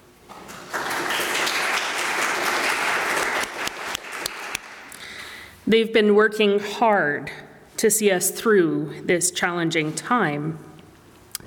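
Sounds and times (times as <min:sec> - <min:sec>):
audience applause: 0:00.4 - 0:04.9
speech: 0:05.7 - 0:10.7.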